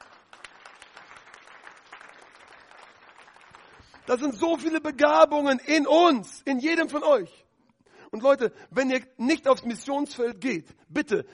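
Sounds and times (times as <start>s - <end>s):
audience clapping: 0.0s - 4.8s
speech: 4.0s - 7.4s, 8.1s - 11.3s.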